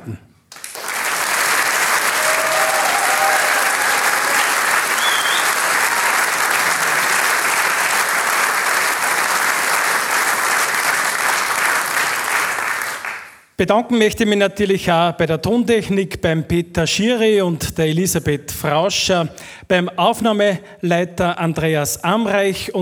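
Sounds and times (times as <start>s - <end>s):
speech: 0.0s - 0.3s, 13.6s - 22.8s
audience applause: 0.5s - 13.4s.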